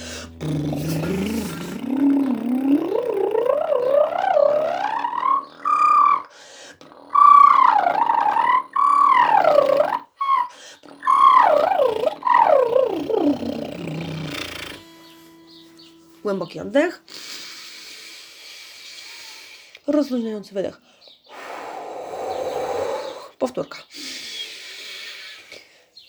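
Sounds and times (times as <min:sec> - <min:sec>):
voice lip trill glide up and down: 0:00.0 - 0:06.3, 0:07.2 - 0:17.4
speech: 0:00.4 - 0:01.1, 0:16.5 - 0:17.0, 0:20.0 - 0:20.8, 0:23.6 - 0:23.9.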